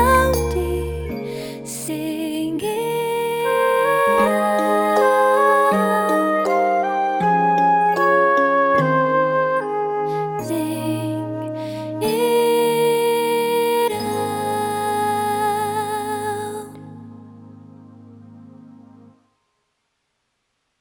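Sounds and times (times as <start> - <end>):
person singing: 0.0 - 8.9, 10.0 - 17.0.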